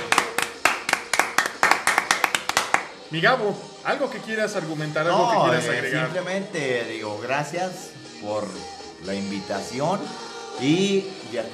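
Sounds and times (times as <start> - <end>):
applause: 0.0 - 3.0
speech: 3.1 - 11.5.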